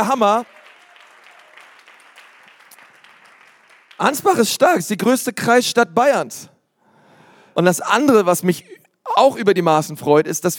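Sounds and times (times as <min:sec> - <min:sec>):
speech: 0:00.0 - 0:00.6, 0:04.0 - 0:06.5, 0:07.6 - 0:10.5
room full of people applauding: 0:00.0 - 0:04.5.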